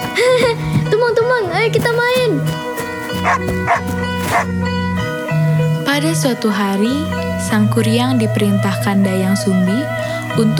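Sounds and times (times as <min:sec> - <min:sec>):
speech: 0:00.2 - 0:04.8, 0:05.9 - 0:10.5
dog barking in short, sharp bursts: 0:01.8 - 0:04.5.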